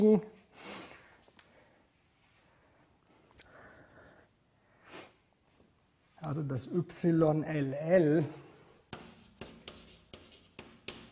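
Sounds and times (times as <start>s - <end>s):
speech: 0.0s - 0.7s, 6.2s - 8.4s
handwriting strokes during a derivation: 8.9s - 11.1s.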